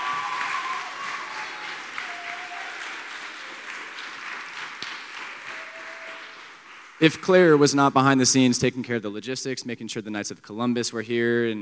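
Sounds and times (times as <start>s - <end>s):
audience clapping: 0.0s - 8.1s
speech: 7.0s - 11.6s.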